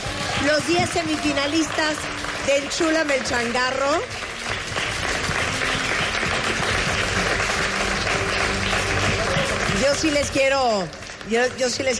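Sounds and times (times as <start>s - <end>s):
audience applause: 0.0s - 11.9s
speech: 0.4s - 4.3s, 9.9s - 11.9s.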